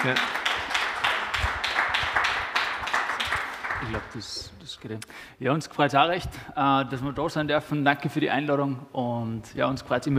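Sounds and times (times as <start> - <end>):
speech: 0.0 - 0.3, 3.8 - 10.1
audience applause: 0.0 - 4.4.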